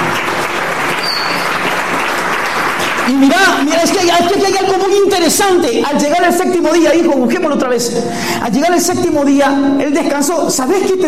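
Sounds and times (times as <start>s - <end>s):
church congregation clapping during a morning worship service: 0.0s - 5.2s
speech: 3.1s - 11.0s.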